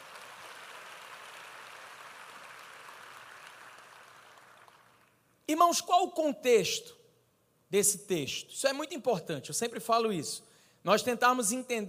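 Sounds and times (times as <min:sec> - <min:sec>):
audience applauding: 0:00.0 - 0:05.1
speech: 0:05.5 - 0:07.0, 0:07.7 - 0:11.8.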